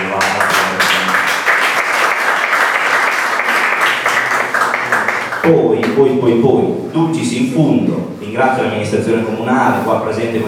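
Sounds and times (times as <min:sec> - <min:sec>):
audience applause: 0:00.0 - 0:06.0
speech: 0:05.5 - 0:10.4.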